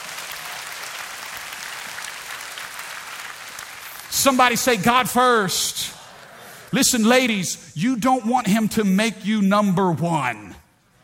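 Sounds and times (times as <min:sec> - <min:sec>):
audience clapping hands: 0:00.0 - 0:06.7
speech: 0:04.1 - 0:06.0, 0:06.7 - 0:10.6.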